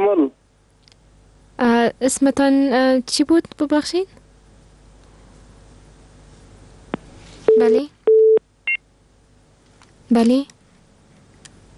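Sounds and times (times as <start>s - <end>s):
speech: 1.8s - 4.2s, 7.6s - 8.0s, 10.1s - 10.5s
telephone busy tone after a disconnected call: 7.5s - 8.4s.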